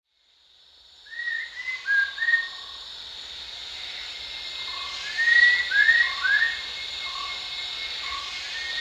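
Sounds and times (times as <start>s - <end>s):
rufous-tailed shama thin descending whistles at Danum: 1.1s - 2.8s, 4.7s - 7.4s, 8.0s - 8.8s.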